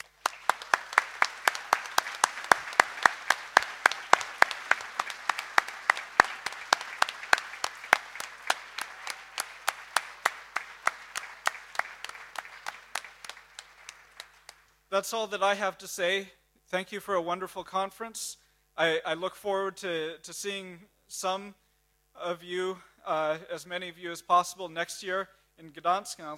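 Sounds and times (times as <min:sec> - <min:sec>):
audience applause: 0:00.0 - 0:14.7
speech: 0:14.9 - 0:21.6, 0:22.2 - 0:26.3.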